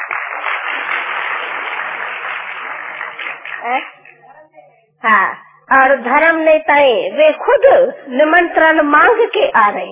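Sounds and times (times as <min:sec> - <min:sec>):
crowd applause: 0:00.0 - 0:04.2
speech: 0:03.6 - 0:04.0, 0:05.0 - 0:09.8.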